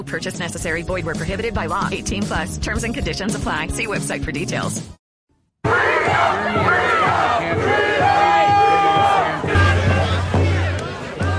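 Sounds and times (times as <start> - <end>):
speech: 0.0 - 5.0, 5.6 - 7.8
protest crowd shouting and chanting at demonstration: 5.6 - 11.3.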